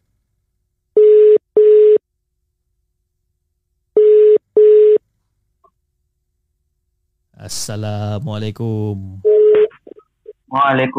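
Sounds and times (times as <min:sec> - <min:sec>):
telephone ringback tone: 0:01.0 - 0:02.0, 0:04.0 - 0:05.0, 0:09.3 - 0:09.7
speech: 0:07.6 - 0:09.3, 0:10.5 - 0:10.9.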